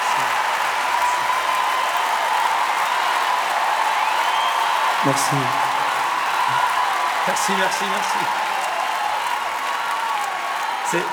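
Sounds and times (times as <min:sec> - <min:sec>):
audience applauding at the end of a song: 0:00.0 - 0:11.1
speech: 0:05.0 - 0:05.7, 0:07.2 - 0:08.5, 0:10.9 - 0:11.1.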